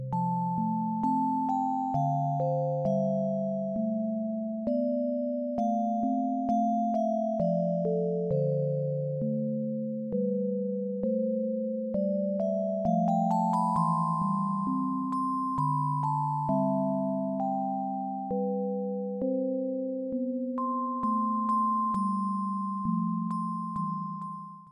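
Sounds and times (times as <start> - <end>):
bell: 0.1 - 24.7.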